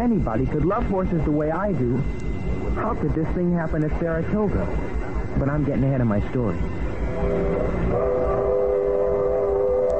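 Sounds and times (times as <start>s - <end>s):
speech: 0.0s - 8.5s
freight train rumbling with a low steady roar: 0.0s - 9.9s
freight train whistle in several stacked tones: 7.0s - 9.9s.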